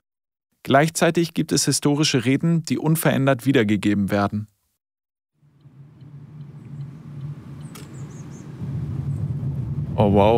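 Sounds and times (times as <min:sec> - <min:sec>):
speech: 0:00.6 - 0:04.5, 0:10.0 - 0:10.3
car engine rumble driving through a palace park: 0:05.4 - 0:10.3
faint high chirps overhead: 0:05.5 - 0:08.6.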